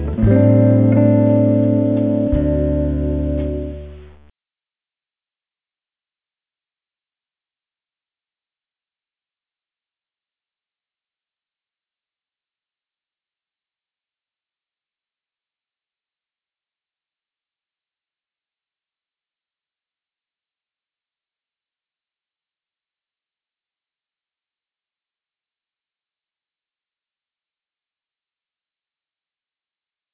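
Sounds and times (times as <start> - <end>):
hold music: 0.0 - 4.3.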